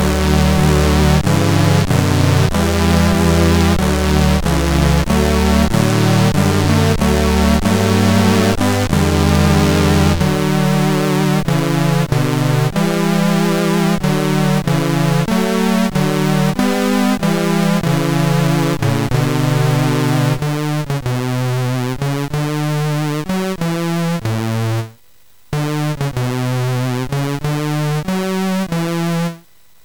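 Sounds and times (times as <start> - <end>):
hymn on MOS6581R4 SID chip: 0.0 - 29.5.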